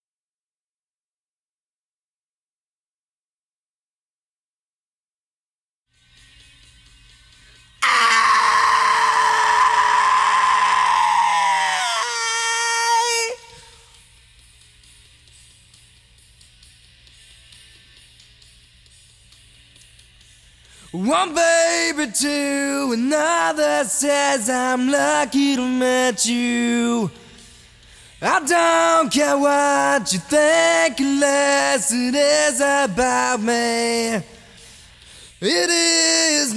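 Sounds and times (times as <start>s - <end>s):
person singing: 7.8s - 13.8s, 20.9s - 27.4s, 28.2s - 34.6s, 35.4s - 36.5s.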